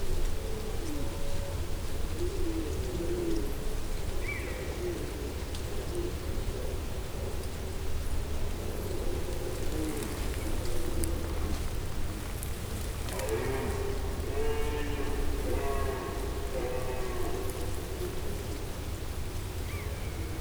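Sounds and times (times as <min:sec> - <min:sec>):
leaves: 0:00.1 - 0:20.3
red deer stags roaring: 0:12.4 - 0:18.8.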